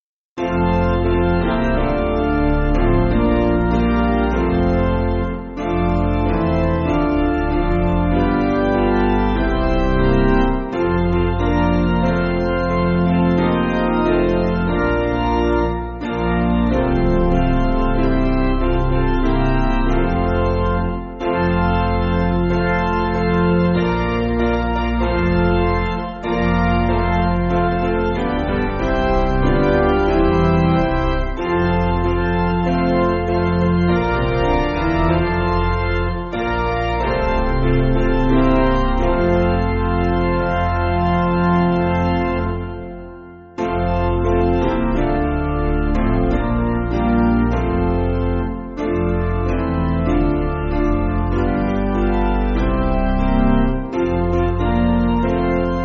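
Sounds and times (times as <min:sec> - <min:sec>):
church piano backing: 0:00.0 - 0:55.8.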